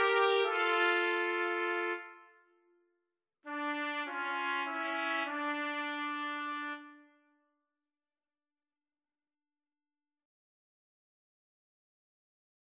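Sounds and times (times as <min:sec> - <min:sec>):
trumpet trio playing: 0:00.0 - 0:02.2, 0:03.5 - 0:07.1.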